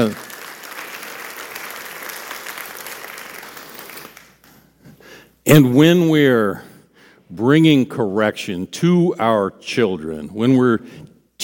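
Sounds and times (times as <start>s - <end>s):
speech: 0.0s - 0.3s, 5.5s - 6.7s, 7.3s - 11.4s
audience applause: 0.0s - 4.4s.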